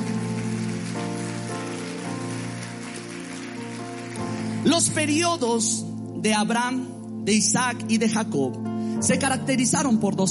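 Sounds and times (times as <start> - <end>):
audience applauding loudly: 0.0 - 5.3
sustained keyboard chords: 0.0 - 10.3
speech: 4.6 - 10.3.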